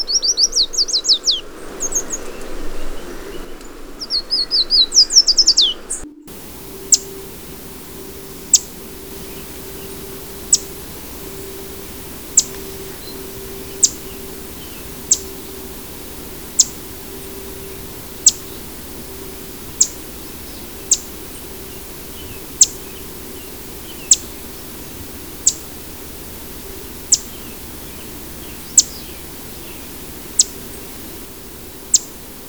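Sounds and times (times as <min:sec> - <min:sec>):
yellow warbler Dendroica petechia singing: 0:00.0 - 0:32.4.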